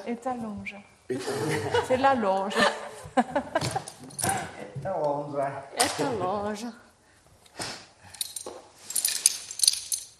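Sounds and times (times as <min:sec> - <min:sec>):
speech: 0:00.0 - 0:06.9
carabiner clinking while handled for climbing: 0:03.9 - 0:04.4, 0:08.1 - 0:10.1.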